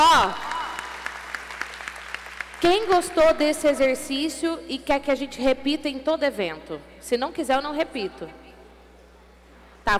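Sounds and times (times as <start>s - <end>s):
audience applauding: 0.4s - 2.6s
speech: 2.6s - 8.4s.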